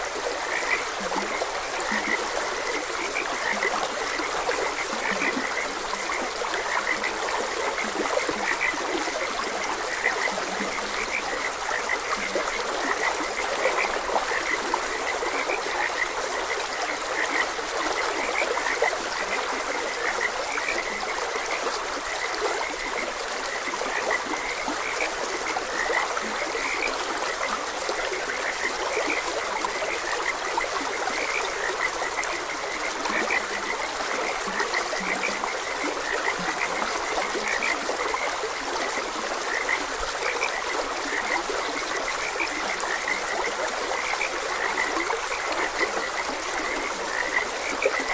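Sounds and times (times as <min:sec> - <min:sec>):
frogs croaking: 0:00.0 - 0:48.1.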